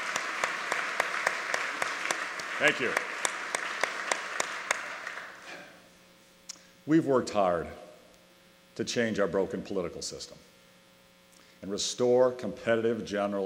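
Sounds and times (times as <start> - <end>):
audience applause: 0.0 - 5.7
speech: 2.6 - 3.1, 6.9 - 7.8, 8.8 - 10.5, 11.6 - 13.4.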